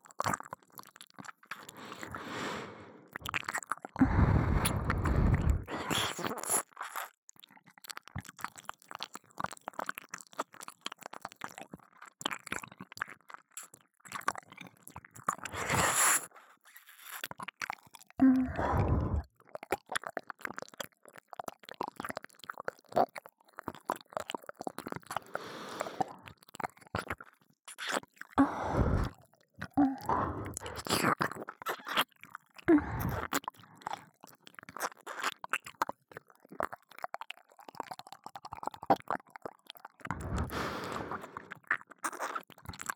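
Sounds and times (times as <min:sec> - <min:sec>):
left ear licking ASMR: 0:00.2 - 0:07.1, 0:15.2 - 0:32.1, 0:32.7 - 0:42.9.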